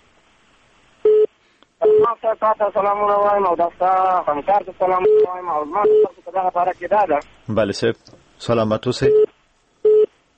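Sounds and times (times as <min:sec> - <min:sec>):
speech: 0:02.0 - 0:09.2
telephone line beeps as a call is connected on a radio phone-in: 0:09.1 - 0:10.1.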